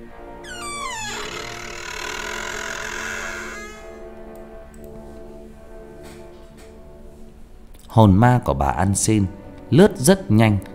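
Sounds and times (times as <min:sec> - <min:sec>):
old door creaking open on dry hinges: 0:00.4 - 0:04.2
speech: 0:07.9 - 0:10.7.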